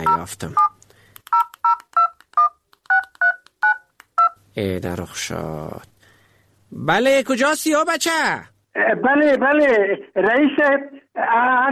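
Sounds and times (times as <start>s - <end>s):
speech: 0.2s - 0.7s, 4.6s - 5.9s, 6.7s - 11.6s
touch-tone phone dialing beeps: 1.3s - 4.4s.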